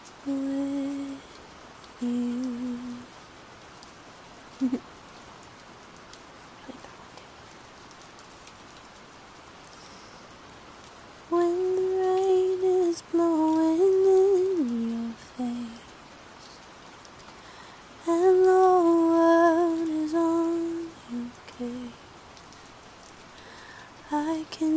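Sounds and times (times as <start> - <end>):
soft singing: 0.0 - 3.2, 6.6 - 7.4, 11.2 - 16.7, 17.9 - 22.1, 23.9 - 24.7
rain: 0.0 - 24.7.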